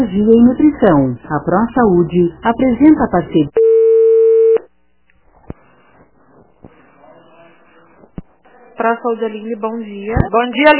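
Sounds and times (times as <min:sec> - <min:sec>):
speech: 0:00.0 - 0:03.6, 0:08.8 - 0:10.7
telephone tone after a dropped call: 0:03.6 - 0:04.7.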